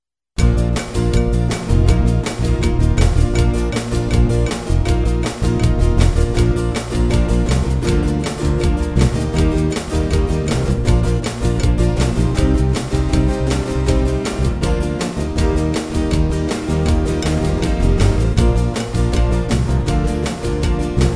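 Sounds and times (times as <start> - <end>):
musical accompaniment: 0.4 - 21.1.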